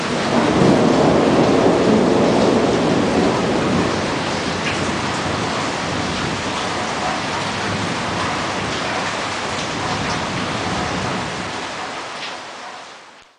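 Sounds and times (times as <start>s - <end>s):
thunderstorm: 0.0s - 12.1s.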